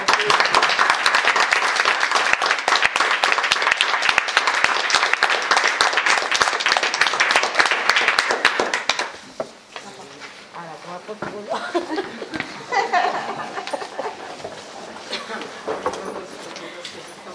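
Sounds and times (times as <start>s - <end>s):
applause at the end of a talk about female punk: 0.0s - 9.2s
laughter: 11.5s - 16.0s.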